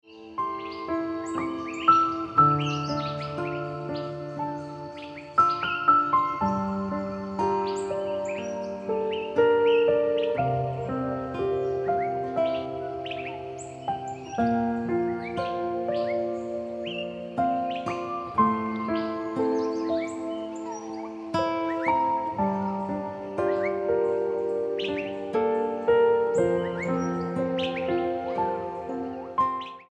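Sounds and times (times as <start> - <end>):
piano ringtone music: 0.1 - 29.9.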